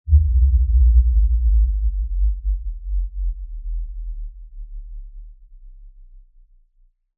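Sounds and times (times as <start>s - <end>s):
descending low-frequency impact: 0.1s - 4.6s.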